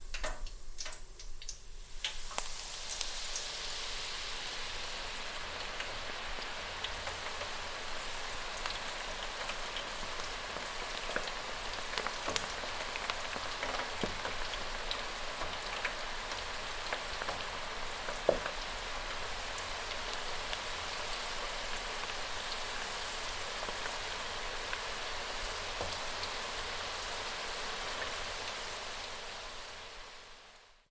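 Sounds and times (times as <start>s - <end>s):
chips frying in a home deep fryer: 0.0s - 30.8s.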